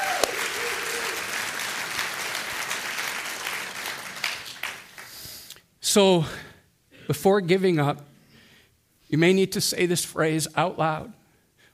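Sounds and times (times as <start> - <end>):
audience clapping: 0.0 - 5.5
speech: 6.0 - 6.4, 7.1 - 8.1, 9.1 - 11.2.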